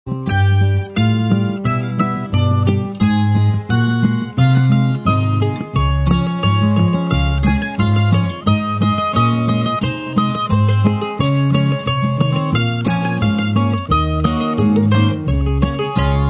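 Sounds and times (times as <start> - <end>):
music: 0.1 - 16.2.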